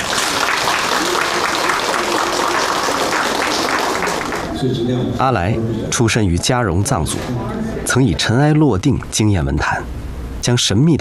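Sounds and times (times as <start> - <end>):
audience applause: 0.0 - 4.5
speech: 4.6 - 10.9.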